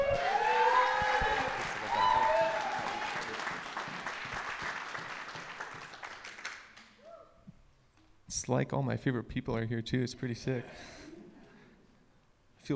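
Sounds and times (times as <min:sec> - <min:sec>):
church congregation applause welcoming a preacher: 0:00.0 - 0:07.0
speech: 0:08.5 - 0:11.0.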